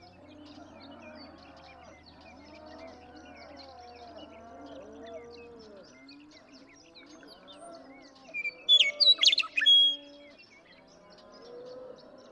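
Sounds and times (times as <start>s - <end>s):
Western meadowlark song: 8.4s - 10.2s.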